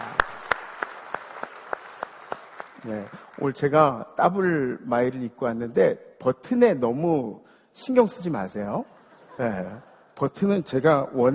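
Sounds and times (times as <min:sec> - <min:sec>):
sharp hand claps in a church service: 0:00.0 - 0:03.4
speech: 0:02.8 - 0:11.3
laughter: 0:08.8 - 0:10.2.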